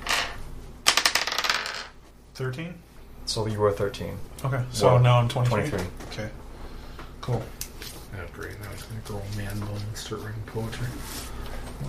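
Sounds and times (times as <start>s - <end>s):
twelve-sided die rolled during a tabletop role-playing game: 0.0s - 2.0s
speech: 2.4s - 6.4s, 7.2s - 11.8s.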